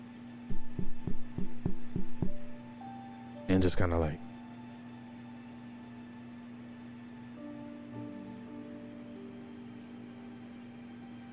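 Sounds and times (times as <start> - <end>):
faint constant hum: 0.0 - 11.3
dull low knocking on a wall: 0.5 - 2.6
speech: 3.5 - 4.2.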